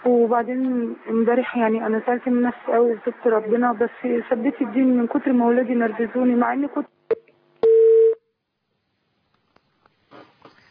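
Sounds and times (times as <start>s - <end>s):
speech: 0.3s - 7.0s
telephone tone after a dropped call: 7.6s - 8.2s.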